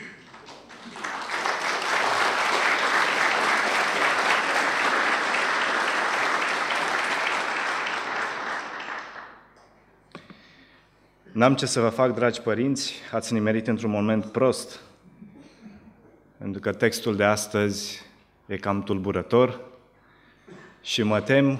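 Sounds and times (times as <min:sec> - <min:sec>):
crowd applause: 0:00.0 - 0:09.5
speech: 0:11.4 - 0:14.9, 0:16.5 - 0:19.7, 0:20.5 - 0:21.5.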